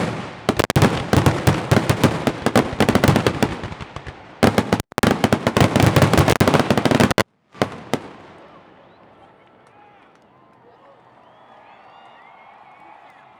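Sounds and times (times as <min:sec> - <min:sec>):
fireworks: 0:00.0 - 0:09.4.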